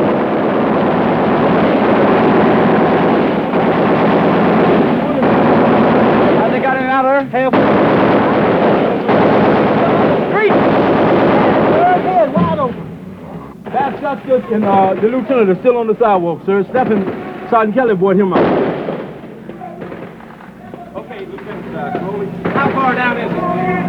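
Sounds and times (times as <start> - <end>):
gunfire during a street firefight: 0.0 - 23.8
men calling out: 4.7 - 18.5, 20.6 - 23.8
speech: 14.4 - 18.6.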